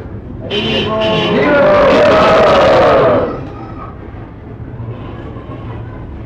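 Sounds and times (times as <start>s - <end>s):
crowd of people imitating lions roaring: 0.5s - 3.6s.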